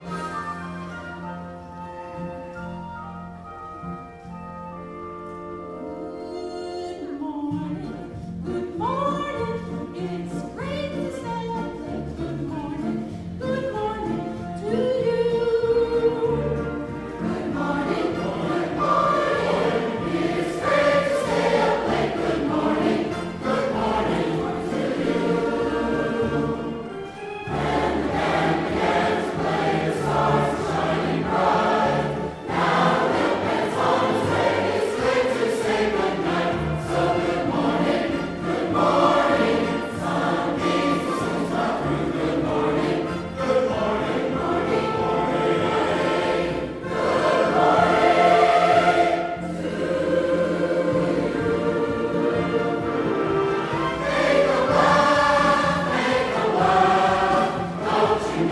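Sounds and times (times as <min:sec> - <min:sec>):
choral medley: 0:00.0 - 0:58.5.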